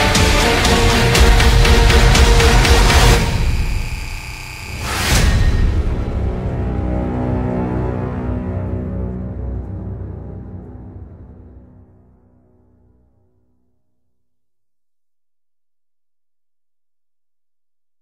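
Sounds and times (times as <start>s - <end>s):
intense massive epic hybrid rock music: 0.0s - 9.1s.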